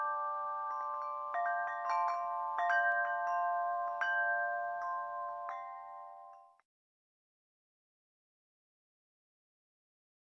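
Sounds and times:
pentatonic chimes: 0:00.0 - 0:06.6.

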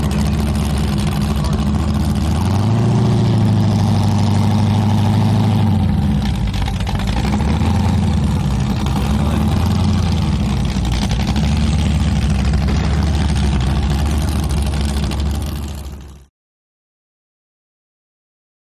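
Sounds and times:
offshore powerboat engines before a race: 0:00.0 - 0:16.3.

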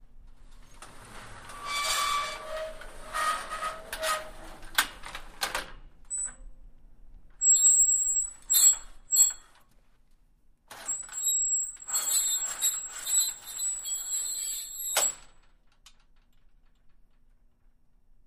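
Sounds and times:
squeaky metal accordion sliding door opening and closing: 0:00.9 - 0:04.6, 0:06.1 - 0:06.4, 0:07.4 - 0:09.5, 0:10.7 - 0:15.4.

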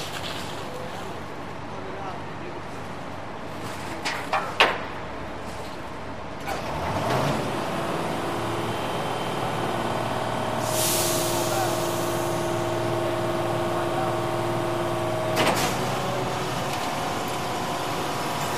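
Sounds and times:
garbage truck: 0:00.0 - 0:01.7, 0:02.6 - 0:18.5.

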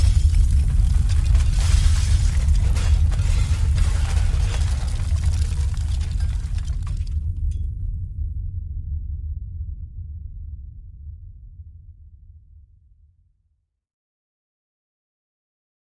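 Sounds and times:
earthquake debris falling: 0:00.0 - 0:07.6.

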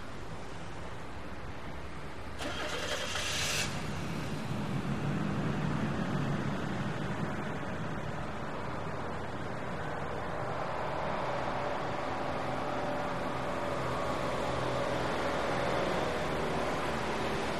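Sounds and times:
two trucks pulling in and passing by: 0:00.0 - 0:17.5
wet traffic passing by: 0:02.4 - 0:08.4.

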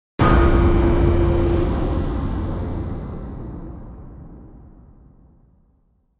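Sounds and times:
metallic impact chime: 0:00.2 - 0:03.4.

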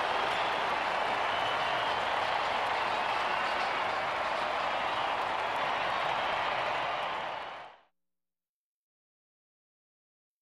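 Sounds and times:
sports arena crowd cheering: 0:00.0 - 0:07.9.

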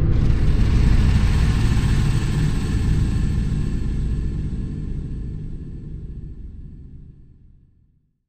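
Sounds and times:
spiral dense digital noise: 0:00.1 - 0:06.4.

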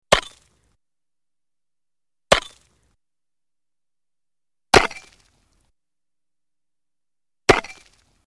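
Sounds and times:
axe or pick chopping ice on a lake shore: 0:00.1 - 0:00.5, 0:02.3 - 0:02.7, 0:04.8 - 0:05.2, 0:07.5 - 0:08.1.

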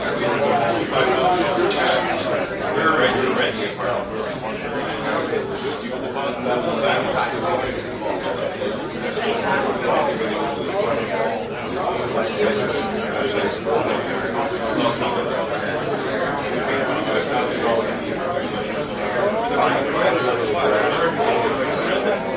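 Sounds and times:
restaurant ambience: 0:00.0 - 0:22.3.

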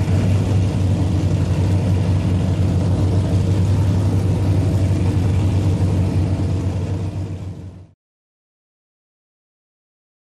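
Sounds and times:
offshore power boat pit ambience: 0:00.0 - 0:08.0.

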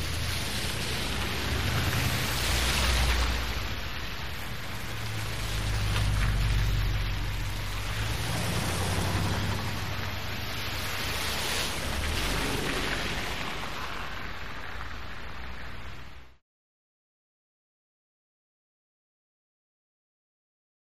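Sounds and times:
traffic passing on wet road: 0:00.0 - 0:16.4.

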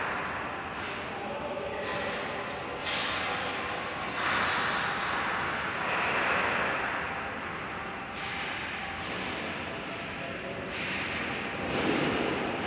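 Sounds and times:
industrial factory interior noise: 0:00.0 - 0:12.6.

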